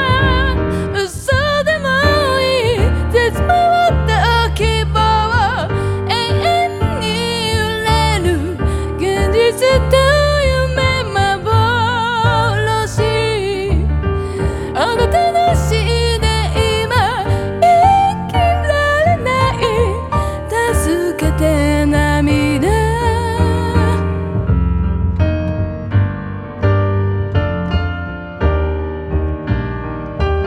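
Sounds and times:
piano: 0:00.0 - 0:30.4
voice: 0:00.1 - 0:13.8, 0:14.8 - 0:24.0.

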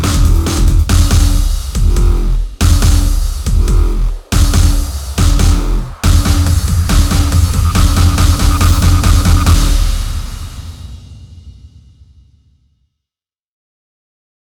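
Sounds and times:
electronic dubstep drops: 0:00.0 - 0:11.0.

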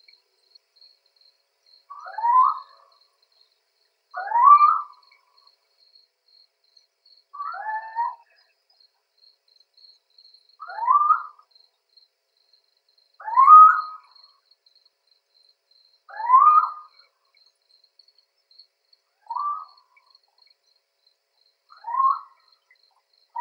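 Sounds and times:
little owl Athene noctua calling: 0:01.9 - 0:02.9, 0:04.2 - 0:05.1, 0:07.4 - 0:08.3, 0:10.6 - 0:11.4, 0:13.2 - 0:14.2, 0:16.1 - 0:17.0, 0:19.3 - 0:19.8, 0:21.7 - 0:22.5.

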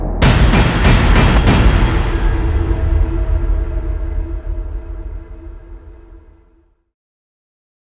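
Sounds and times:
drum: 0:00.2 - 0:05.5.

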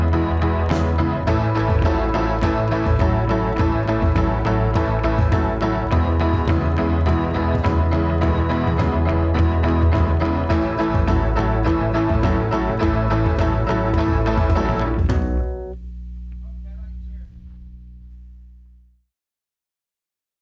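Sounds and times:
instrumental backing track: 0:00.0 - 0:15.8.

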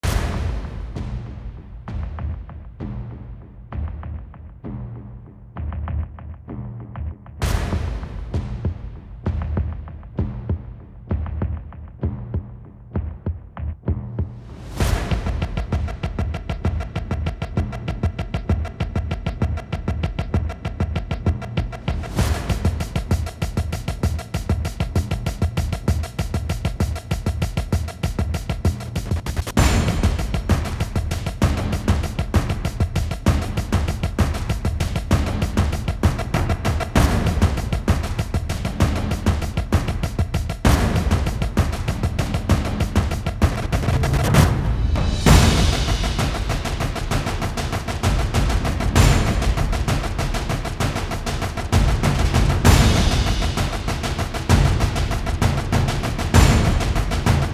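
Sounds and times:
drum effects: 0:00.0 - 0:57.5.

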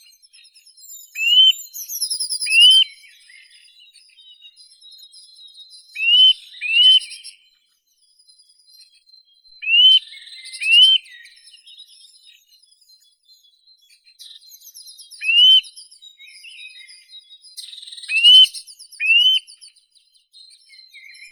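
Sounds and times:
Eurasian nuthatch Sitta europaea calling: 0:01.2 - 0:02.8, 0:06.0 - 0:07.3, 0:09.6 - 0:11.1, 0:15.2 - 0:15.6, 0:18.0 - 0:19.6.

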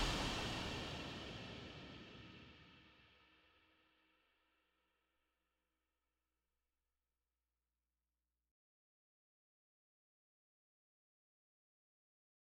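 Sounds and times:
percussion: 0:00.0 - 0:02.6.

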